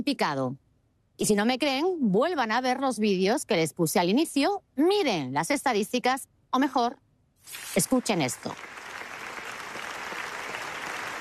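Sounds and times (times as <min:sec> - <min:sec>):
speech: 0:00.0 - 0:00.6, 0:01.2 - 0:08.8
festival audience ovation: 0:08.6 - 0:11.1.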